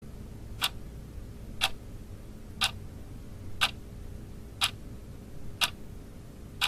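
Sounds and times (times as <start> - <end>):
clock minute hand ticking: 1.6 - 1.8, 2.6 - 2.8, 3.6 - 3.8, 4.6 - 4.8, 5.6 - 5.8.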